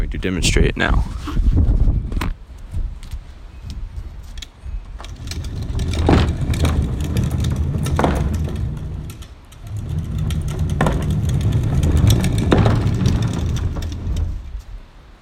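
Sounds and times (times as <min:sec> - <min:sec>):
speech: 0:00.1 - 0:01.5
wheeled trash can rolling down driveway pavement: 0:04.9 - 0:14.8.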